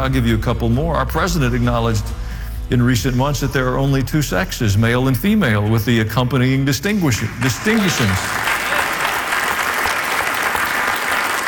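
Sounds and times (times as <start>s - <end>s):
speech: 0.0s - 8.4s
audience applause: 7.4s - 11.4s.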